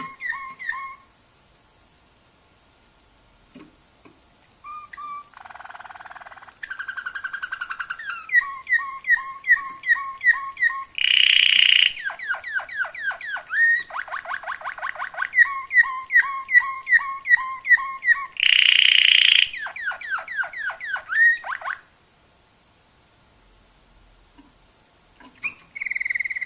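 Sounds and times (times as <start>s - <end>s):
Waterslager canary singing bubbling dipping notes: 0.0s - 1.1s, 4.6s - 21.9s, 25.3s - 26.4s.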